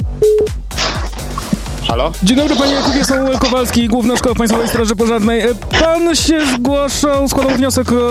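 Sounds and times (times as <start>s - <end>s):
telephone call ringing tone: 0.2s - 0.5s
speech: 1.9s - 8.0s.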